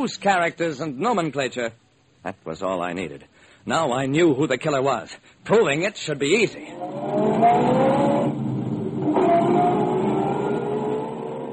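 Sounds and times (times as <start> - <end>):
speech: 0.0 - 7.8
car engine revving and pulling away: 6.7 - 11.5.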